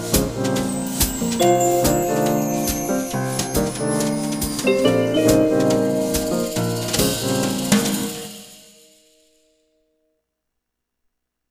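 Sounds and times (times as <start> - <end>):
lounge music: 0.0 - 9.2.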